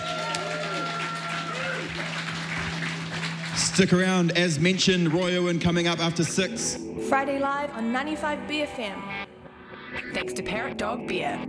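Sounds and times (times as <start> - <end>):
people clapping: 0.0 - 6.4
speech: 3.8 - 9.1, 10.0 - 11.4.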